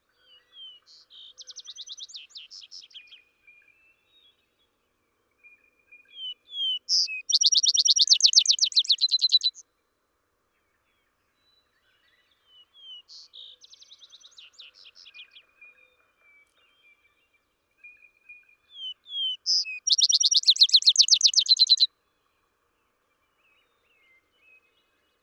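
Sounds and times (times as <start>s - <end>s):
Vesper sparrow songs of slurred whistles and a fast bright trill: 0.2s - 4.6s, 5.4s - 9.6s, 10.9s - 21.9s.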